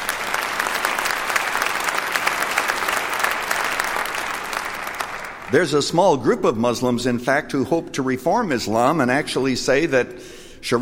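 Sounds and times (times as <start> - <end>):
crowd applauding: 0.0 - 5.8
speech: 5.5 - 10.8.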